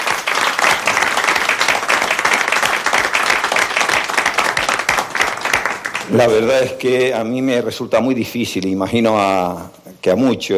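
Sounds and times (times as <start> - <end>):
crowd applause: 0.0 - 6.8
speech: 6.1 - 10.5.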